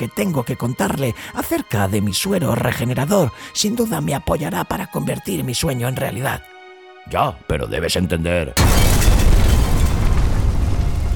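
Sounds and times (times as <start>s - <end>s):
speech: 0.0s - 9.1s
crackling debris: 8.6s - 11.1s
earthquake jolt rumble sound effect: 8.6s - 11.1s.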